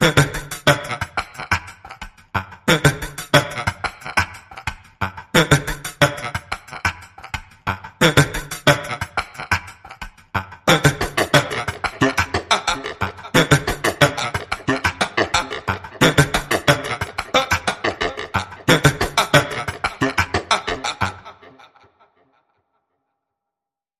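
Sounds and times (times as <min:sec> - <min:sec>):
pulsing abstract vocals: 0:00.0 - 0:22.1
laughter: 0:10.7 - 0:22.3.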